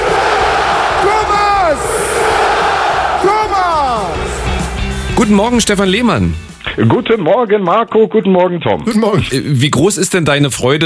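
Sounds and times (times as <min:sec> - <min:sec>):
packed stadium crowd shouting in unison after a goal call: 0:00.0 - 0:05.1
constant wash of stadium crowd noise: 0:00.0 - 0:06.0
speech: 0:05.2 - 0:10.8.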